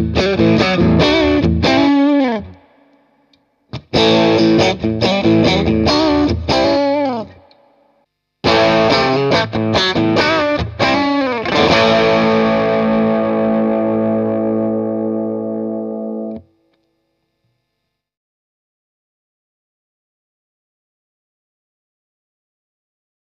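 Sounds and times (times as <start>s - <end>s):
60s vintage Strat electric guitar on bridge pickup: 0.0s - 7.8s, 8.4s - 16.5s.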